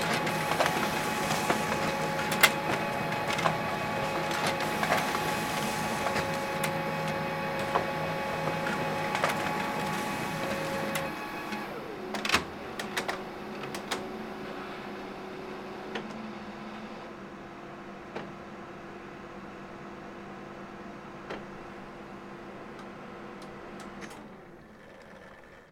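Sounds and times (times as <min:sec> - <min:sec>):
HP LaserJet CP3525dn office printer printing a duplex document: 0:00.0 - 0:17.2.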